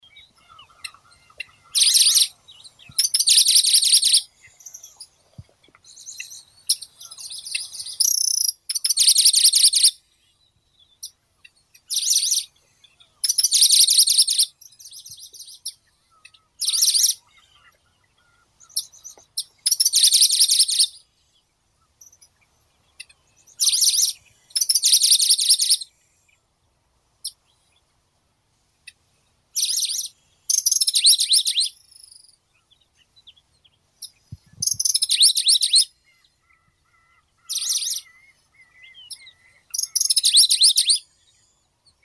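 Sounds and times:
Locustella pleskei singing: 0.0 - 26.3, 29.6 - 42.0.

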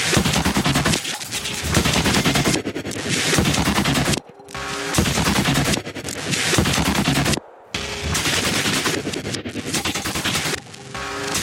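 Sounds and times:
phaser pulse: 0.1 - 11.3.

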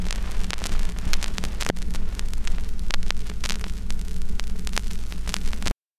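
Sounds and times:
record needle drop: 0.0 - 5.8.

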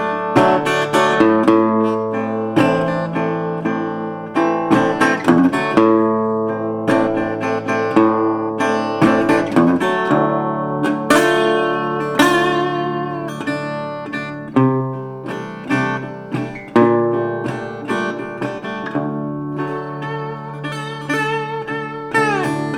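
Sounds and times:
instrumental music: 0.0 - 22.7.

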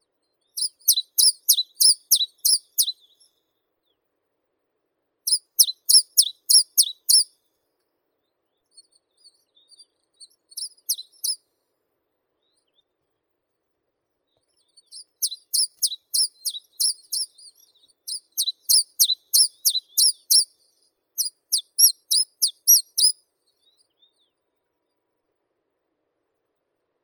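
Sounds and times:
Caucasian chiffchaff Phylloscopus lorenzii singing: 0.6 - 3.3, 5.3 - 7.3, 9.2 - 11.4, 14.6 - 20.6, 21.2 - 23.8.

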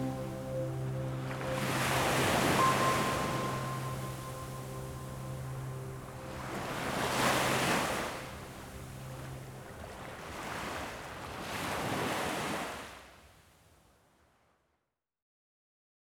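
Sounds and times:
flowing piano music: 0.0 - 10.5
beach waves: 0.0 - 13.1.

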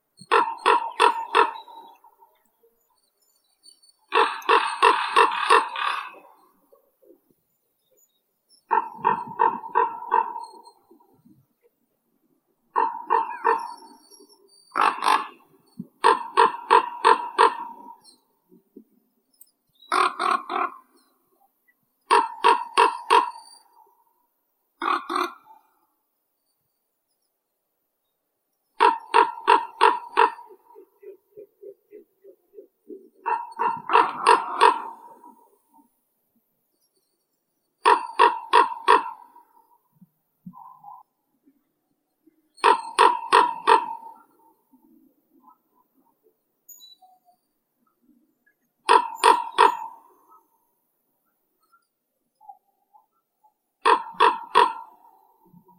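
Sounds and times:
common raven Corvus corax: 0.2 - 2.3, 4.1 - 6.8, 8.7 - 11.2, 12.7 - 18.2, 19.8 - 21.1, 22.1 - 23.9, 24.8 - 25.9, 28.8 - 35.8, 37.8 - 39.9, 42.6 - 45.9, 48.8 - 50.6, 53.8 - 55.7.

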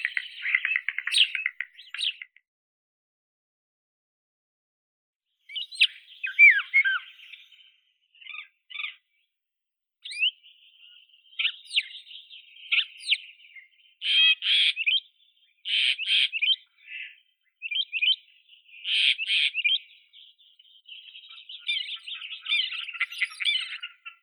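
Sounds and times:
common starling Sturnus vulgaris: 0.0 - 2.2, 5.5 - 9.0, 10.0 - 15.0, 15.7 - 24.2.

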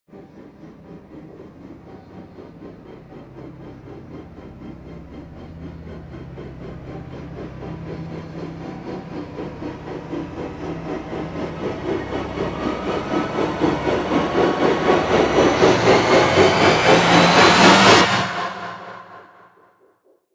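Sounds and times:
rising sound: 7.5 - 19.6.

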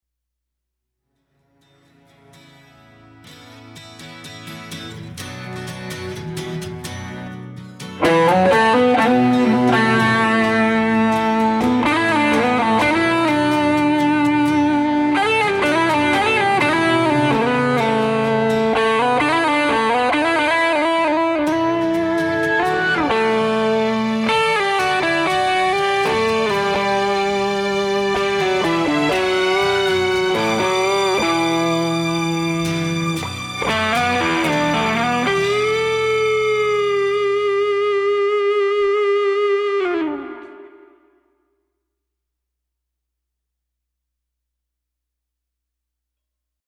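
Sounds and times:
guitars: 1.2 - 41.3
strings: 1.6 - 38.0.

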